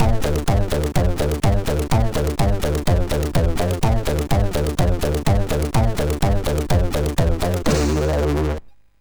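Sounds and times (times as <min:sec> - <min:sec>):
MOS 6581R2 SID chip music: 0:00.0 - 0:08.6.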